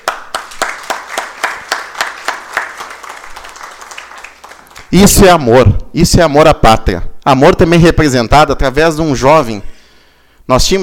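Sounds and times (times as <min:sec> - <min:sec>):
audience clapping: 0:00.0 - 0:05.4
speech: 0:04.9 - 0:09.7, 0:10.5 - 0:10.8.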